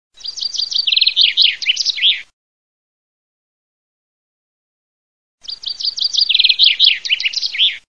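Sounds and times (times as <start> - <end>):
chaffinch singing: 0.2 - 2.3, 5.4 - 7.8.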